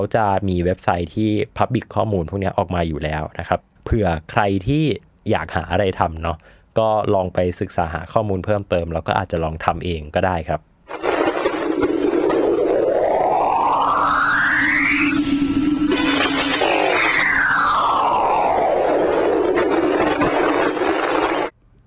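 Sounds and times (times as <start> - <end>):
speech: 0.0 - 10.7
Enceladus moon scream space sound recording: 10.9 - 21.5.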